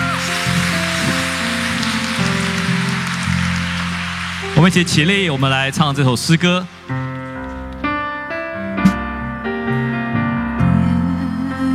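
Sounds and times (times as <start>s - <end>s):
audience applauding loudly: 0.0s - 7.1s
sustained keyboard chords: 0.0s - 11.7s
speech: 4.6s - 7.0s.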